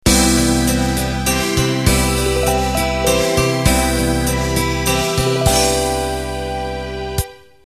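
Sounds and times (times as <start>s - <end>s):
waltz ending: 0.1s - 7.6s.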